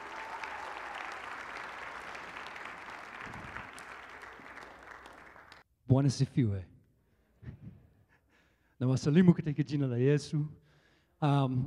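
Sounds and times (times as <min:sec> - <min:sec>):
audience applause: 0:00.0 - 0:05.6
speech: 0:05.9 - 0:06.7, 0:08.8 - 0:10.6, 0:11.2 - 0:11.6.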